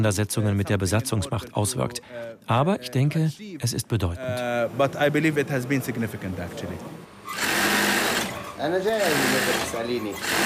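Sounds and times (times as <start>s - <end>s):
speech: 0.0s - 7.4s, 8.6s - 10.4s
sewing machine stitching dress seams in a tailor's workshop in Sheikh Jarrah, Jerusalem: 7.2s - 10.4s.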